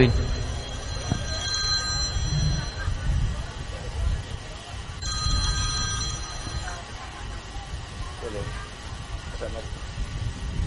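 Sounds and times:
telephone ringing during a religious gathering: 0.0 - 3.2, 5.0 - 7.0
low steady murmur: 0.0 - 10.5.

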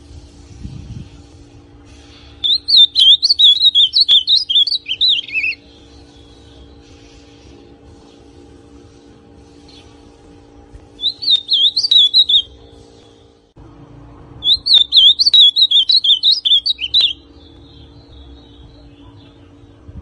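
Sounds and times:
ultramarine grosbeak song: 2.1 - 6.9, 11.0 - 13.4, 14.4 - 19.5.

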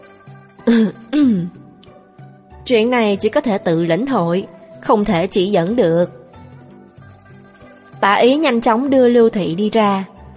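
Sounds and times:
throaty coughs: 0.6 - 1.6
speech: 0.7 - 1.6, 2.6 - 6.2, 8.0 - 10.1.

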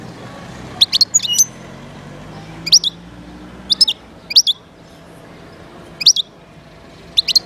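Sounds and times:
wild European goldfinch singing: 0.8 - 1.7, 2.7 - 3.1, 3.7 - 4.7, 6.0 - 6.4, 7.1 - 7.4.

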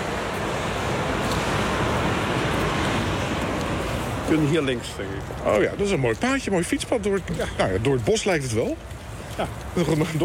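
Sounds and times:
motorway traffic passing beneath a viaduct on the A7: 0.0 - 10.2
speech: 4.3 - 10.2.

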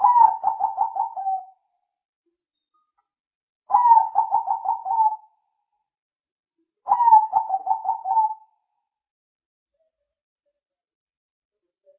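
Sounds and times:
spotted dove cooing: 0.0 - 1.5, 3.7 - 5.2, 6.9 - 8.4.

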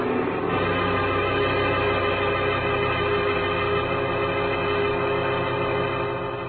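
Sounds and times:
powerful car motor roaring out of a driveway: 0.0 - 6.4.

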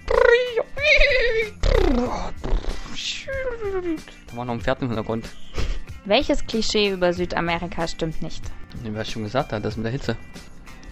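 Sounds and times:
voice imitating ocean waves: 0.0 - 2.5
voice imitating birdsong: 0.0 - 4.1
speech: 3.8 - 10.5.

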